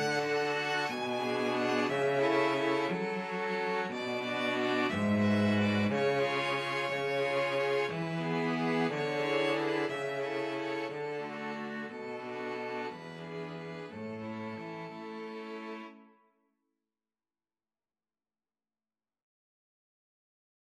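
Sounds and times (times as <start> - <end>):
string quartet playing a waltz: 0.0 - 16.0.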